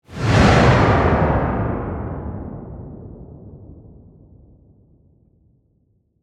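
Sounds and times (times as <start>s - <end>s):
sci-fi shockwave blast explosion in space: 0.1s - 4.6s.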